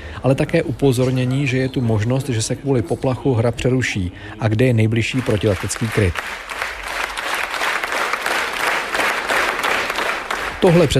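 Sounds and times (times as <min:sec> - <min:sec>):
speech: 0:00.2 - 0:06.7, 0:10.6 - 0:10.9
theatre audience standing ovation applause: 0:05.0 - 0:10.9.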